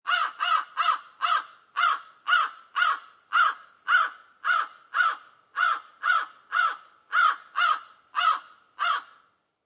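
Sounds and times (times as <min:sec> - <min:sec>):
single crow cawing: 0:00.1 - 0:09.3.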